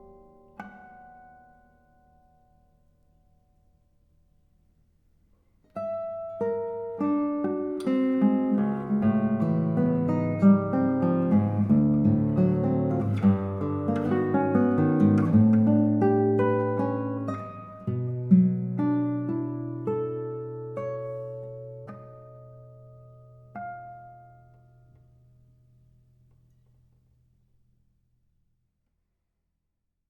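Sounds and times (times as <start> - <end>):
guitar prelude: 0.0 - 2.8, 5.8 - 26.0.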